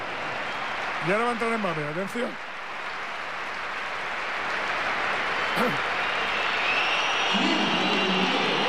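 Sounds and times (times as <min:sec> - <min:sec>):
stadium crowd applause: 0:00.0 - 0:08.6
stadium crowd roaring: 0:00.0 - 0:08.6
speech: 0:01.0 - 0:02.5, 0:05.6 - 0:05.9
scattered shrill whistles: 0:06.0 - 0:08.6.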